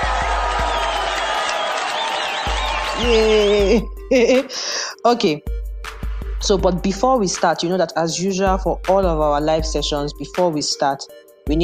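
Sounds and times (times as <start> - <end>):
audience clapping: 0.0 - 3.7
high whoops and shouts: 0.0 - 3.9
speech: 3.0 - 5.5, 6.4 - 11.6.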